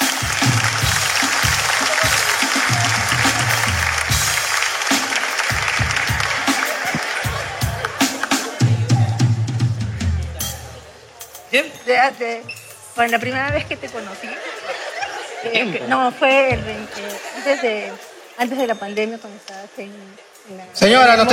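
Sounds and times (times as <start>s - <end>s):
applause: 0.0s - 8.6s
laughter: 1.2s - 9.2s, 13.4s - 18.5s
speech: 11.6s - 14.8s, 15.4s - 21.3s.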